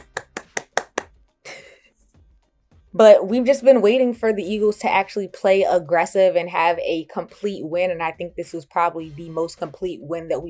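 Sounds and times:
sharp hand claps: 0:00.0 - 0:01.6
speech: 0:02.9 - 0:10.4.

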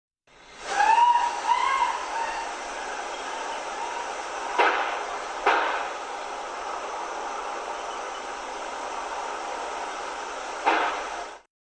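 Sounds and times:
steady hiss: 0:00.3 - 0:11.5
high wavering scream: 0:00.7 - 0:04.2.

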